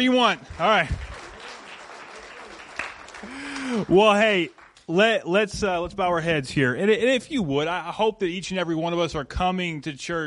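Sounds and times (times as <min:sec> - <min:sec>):
speech: 0:00.0 - 0:01.0, 0:03.2 - 0:10.2
audience clapping: 0:00.0 - 0:05.5.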